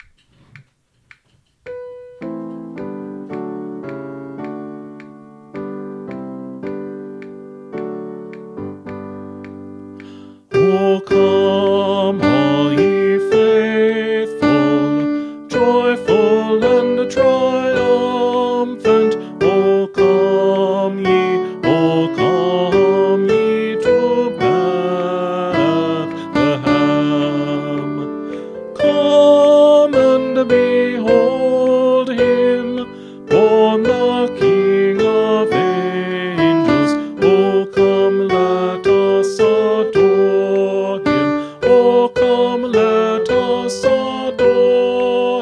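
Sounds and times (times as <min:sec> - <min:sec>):
tenor singing a carol: 0:10.5 - 0:45.4.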